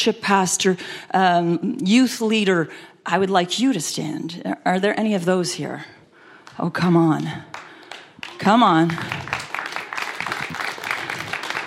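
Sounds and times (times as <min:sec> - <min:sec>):
speech: 0:00.0 - 0:06.0, 0:06.6 - 0:07.6, 0:08.3 - 0:09.2
church congregation clapping: 0:07.5 - 0:11.6.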